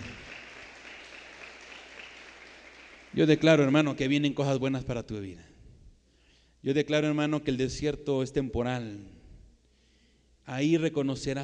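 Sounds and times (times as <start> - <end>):
audience applauding: 0.0 - 3.8
speech: 3.2 - 5.5, 6.6 - 9.2, 10.4 - 11.4.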